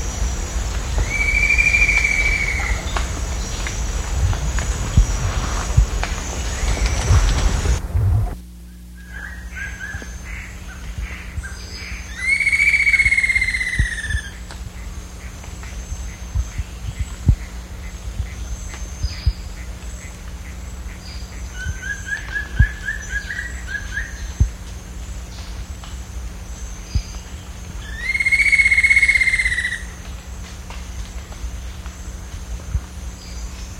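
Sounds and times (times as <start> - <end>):
bird calling: 0.0 - 7.8, 9.0 - 25.7, 26.4 - 30.1
low background hum: 0.0 - 33.7.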